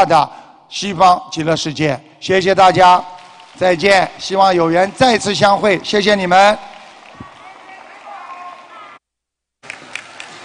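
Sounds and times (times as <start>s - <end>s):
speech: 0.0s - 6.7s
audience applause: 3.1s - 9.0s, 9.6s - 10.4s.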